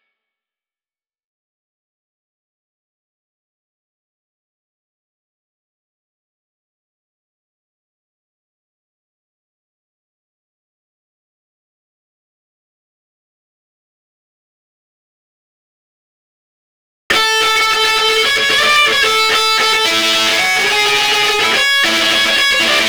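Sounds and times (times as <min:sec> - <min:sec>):
lead guitar: 0:17.1 - 0:22.8.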